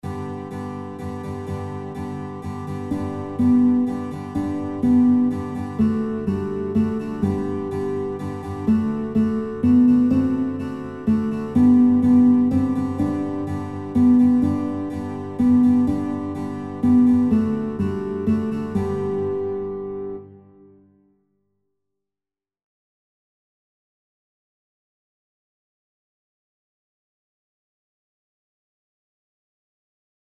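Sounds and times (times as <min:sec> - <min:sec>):
guitar playing children's songs: 0:00.0 - 0:20.8.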